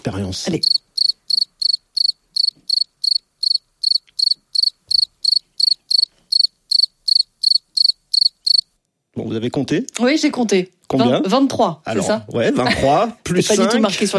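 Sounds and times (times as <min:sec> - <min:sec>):
speech: 0:00.0 - 0:01.1, 0:09.2 - 0:14.1
cricket chirping: 0:00.6 - 0:08.8.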